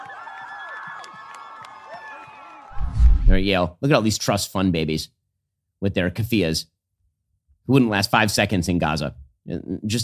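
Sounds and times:
Yale students cheering and whooping as an American flag is lowered: 0.0 - 2.9
speech: 3.3 - 5.2, 5.8 - 6.7, 7.7 - 10.0.

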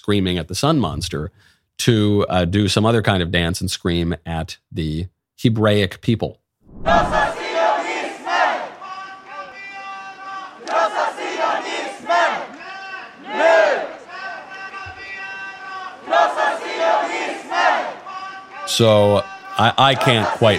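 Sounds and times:
speech: 0.0 - 7.2, 18.7 - 20.5
protest crowd chanting slogan: 6.8 - 20.5.

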